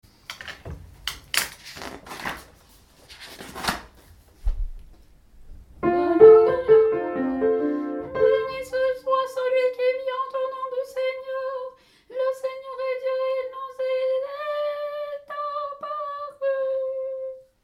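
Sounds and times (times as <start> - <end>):
tenor singing: 5.8 - 17.4.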